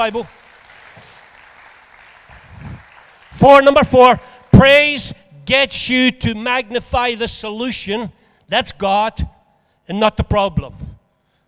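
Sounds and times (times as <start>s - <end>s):
speech: 0.0s - 0.4s, 3.4s - 10.9s
crowd applauding: 0.0s - 3.4s.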